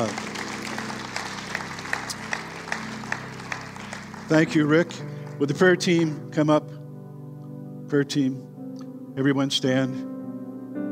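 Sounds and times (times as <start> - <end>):
audience clapping hands: 0.0 - 6.1
speech: 4.3 - 6.8, 7.9 - 8.5, 9.2 - 10.1.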